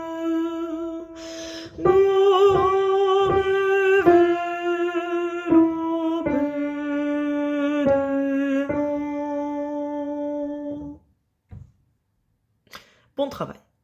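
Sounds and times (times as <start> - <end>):
alto singing a Ukrainian chant: 0.0 - 11.0.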